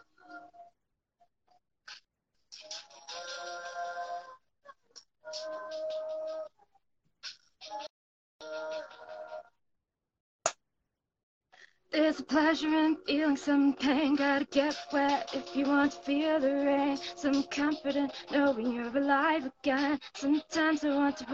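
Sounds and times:
song from laptop speakers: 1.9s - 4.4s, 5.3s - 6.5s, 7.2s - 9.5s, 12.0s - 21.3s
speech: 12.2s - 21.3s.

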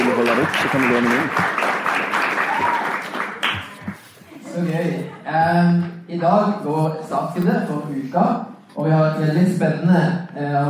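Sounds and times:
small audience applause: 0.0s - 4.2s
speech: 0.2s - 1.5s, 4.6s - 10.6s.

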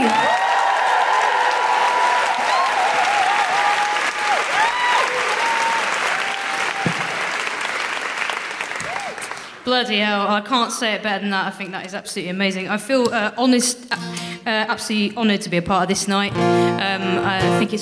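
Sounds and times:
audience applause: 0.0s - 9.6s
speech: 9.7s - 17.8s.

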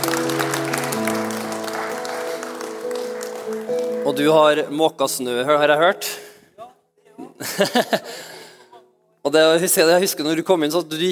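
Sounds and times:
audience applause: 0.0s - 4.4s
speech: 4.1s - 6.2s, 7.6s - 8.3s, 9.3s - 11.1s.

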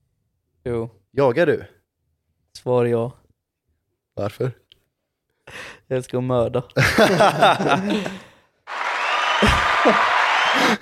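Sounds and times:
speech: 0.7s - 1.8s, 2.6s - 3.2s, 4.2s - 4.6s, 5.5s - 8.2s, 9.8s - 10.7s
laughter: 6.8s - 10.7s
applause: 7.9s - 10.7s.

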